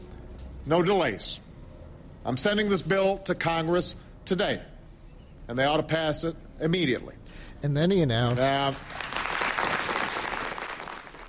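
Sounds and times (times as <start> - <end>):
speech: 0.7 - 1.4, 2.2 - 4.7, 5.5 - 9.0
staged applause at a White House Rose Garden event: 8.3 - 11.2.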